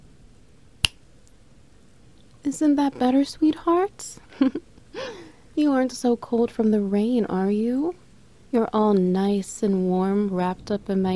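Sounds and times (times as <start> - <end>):
crisp finger snap: 0.8 - 1.0
speech: 2.5 - 11.1.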